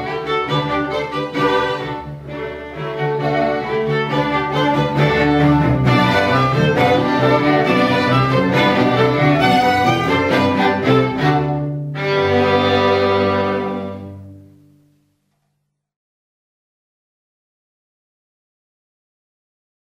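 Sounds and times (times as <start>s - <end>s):
string ensemble: 0.0s - 14.9s.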